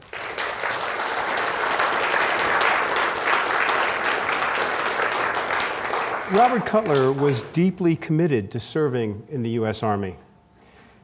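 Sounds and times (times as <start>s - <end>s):
audience applause at the Pritzker Military Museum and Library: 0.0s - 7.7s
speech: 6.3s - 10.2s.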